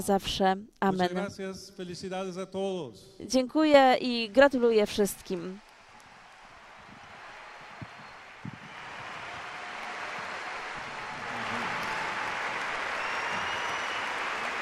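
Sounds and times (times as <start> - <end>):
speech: 0.0 - 5.7
huge crowd applauding the Pope during his visit to Spain: 5.5 - 14.6.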